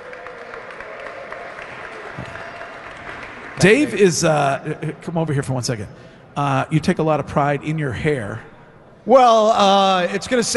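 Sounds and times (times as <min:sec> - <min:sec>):
audience applause: 0:00.0 - 0:04.3
speech: 0:03.6 - 0:10.5.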